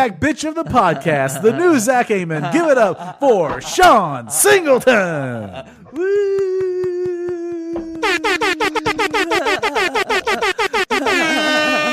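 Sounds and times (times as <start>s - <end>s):
speech: 0.0s - 6.7s
laughter: 0.6s - 11.9s
air horn siren sound effect: 11.0s - 11.9s.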